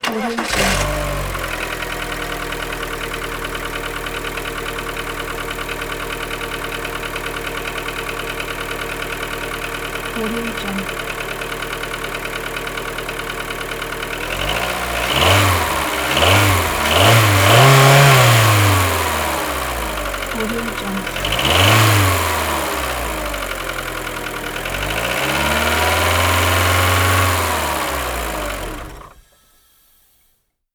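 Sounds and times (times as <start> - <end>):
car starting: 0.0 - 30.3.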